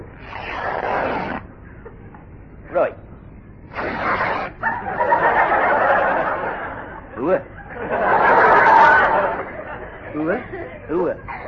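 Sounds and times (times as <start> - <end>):
zip pulled up on a rubber suit: 0.0 - 1.5, 3.7 - 4.6
speech: 2.8 - 3.0
laughter: 4.0 - 11.4.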